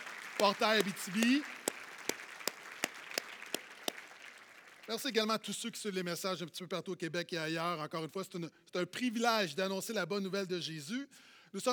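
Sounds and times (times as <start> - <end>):
audience claps: 0.0 - 5.0
speech: 0.4 - 1.6, 4.9 - 11.7.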